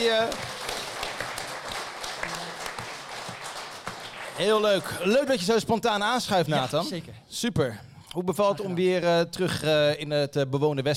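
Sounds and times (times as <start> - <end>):
speech: 0.0 - 0.5, 4.4 - 10.9
applause: 0.0 - 5.4.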